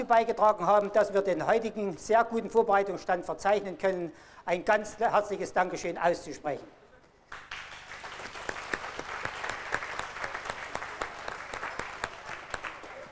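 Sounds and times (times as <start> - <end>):
speech: 0.0 - 7.4
audience applause: 7.3 - 13.1.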